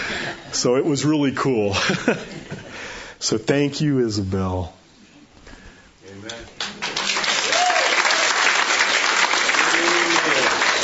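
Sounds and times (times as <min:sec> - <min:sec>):
speech: 0:00.6 - 0:02.6, 0:03.2 - 0:04.8
audience applause: 0:06.6 - 0:10.8.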